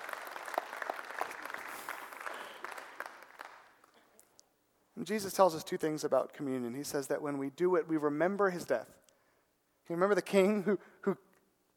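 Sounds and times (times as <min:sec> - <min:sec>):
audience clapping: 0:00.0 - 0:04.2
speech: 0:05.0 - 0:09.0, 0:09.9 - 0:11.2.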